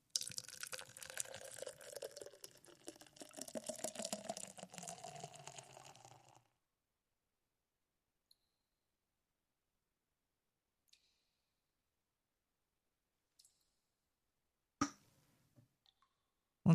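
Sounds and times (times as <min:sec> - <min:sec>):
Guinness beer being poured, trickling and fizzing: 0:00.1 - 0:06.5.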